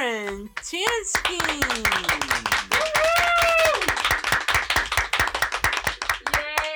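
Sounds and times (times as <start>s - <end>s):
small audience clapping for an invited guest: 0.0s - 6.7s
speech: 0.6s - 2.1s
people whooping and cheering: 1.4s - 4.9s, 6.2s - 6.7s.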